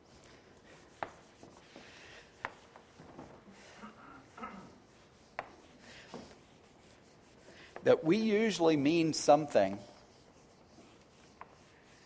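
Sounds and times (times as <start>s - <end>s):
quiet steady noise: 0.0s - 12.0s
rubbing and scraping of writing being erased from a board: 0.1s - 12.0s
speech: 7.8s - 9.9s.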